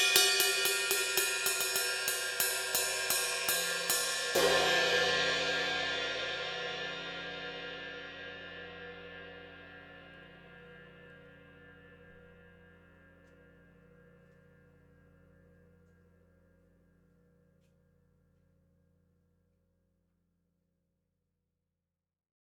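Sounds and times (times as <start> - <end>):
cymbal: 0.0 - 14.9.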